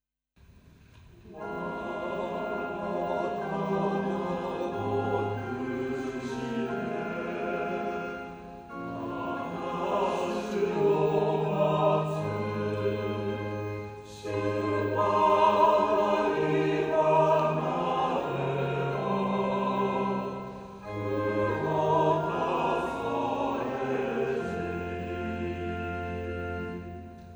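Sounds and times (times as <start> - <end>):
choir singing: 1.1 - 27.3.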